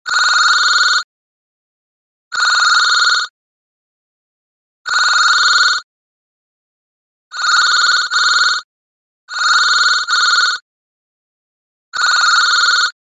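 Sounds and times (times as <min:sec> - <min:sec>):
office phone ringing: 0:00.1 - 0:01.1, 0:02.3 - 0:03.3, 0:04.9 - 0:05.9, 0:07.3 - 0:08.7, 0:09.3 - 0:10.6, 0:11.9 - 0:13.0.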